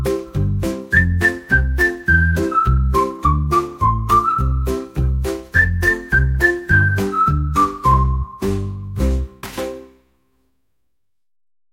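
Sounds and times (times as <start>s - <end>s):
cheerful whistling: 0.0s - 8.8s.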